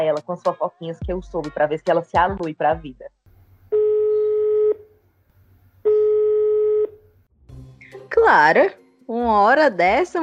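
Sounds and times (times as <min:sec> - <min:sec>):
speech: 0:00.2 - 0:03.1, 0:08.1 - 0:10.2
telephone ringing tone of a call being placed: 0:03.7 - 0:04.9, 0:05.8 - 0:07.0.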